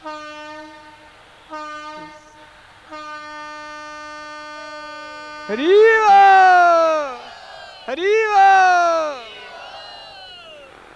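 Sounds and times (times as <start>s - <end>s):
speech: 0.0s - 0.2s, 5.5s - 6.6s, 7.9s - 9.2s
passing train horn blasts: 0.0s - 5.8s.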